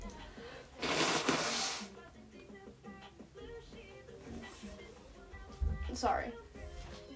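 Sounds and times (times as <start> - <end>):
person blowing nose: 0.7 - 2.0
speech: 6.0 - 6.4.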